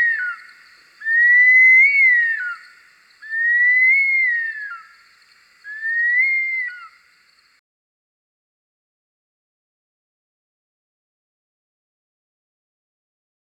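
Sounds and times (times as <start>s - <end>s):
bush stone curlew: 0.0s - 7.6s.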